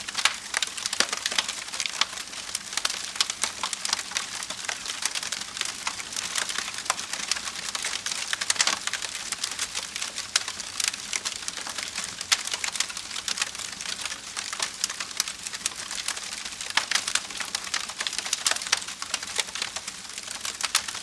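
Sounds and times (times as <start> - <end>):
campfire bonfire wood crackling: 0.0 - 21.0.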